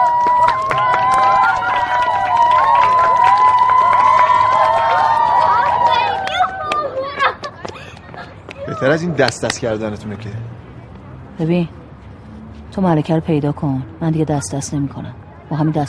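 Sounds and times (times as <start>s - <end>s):
audience applause and cheering: 0.0s - 7.1s
speech: 8.8s - 10.6s, 11.4s - 11.8s, 12.8s - 15.8s.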